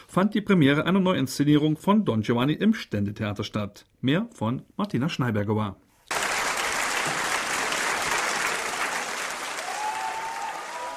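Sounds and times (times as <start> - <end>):
speech: 0.2 - 5.8
opera audience applause after premiere: 6.1 - 10.9.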